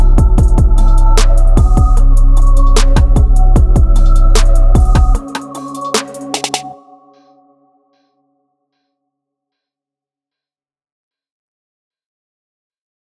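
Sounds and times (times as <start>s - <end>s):
Roland TR8s drum machine beat: 0.0s - 6.7s.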